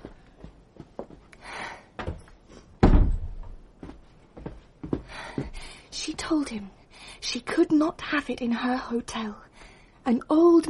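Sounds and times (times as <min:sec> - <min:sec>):
door being shut: 0:02.8 - 0:03.5
speech: 0:06.2 - 0:09.4, 0:10.0 - 0:10.6.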